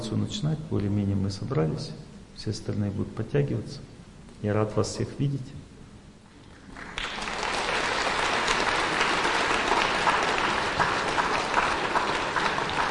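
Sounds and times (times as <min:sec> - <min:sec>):
speech: 0:00.1 - 0:05.7
audience applause: 0:06.6 - 0:12.8.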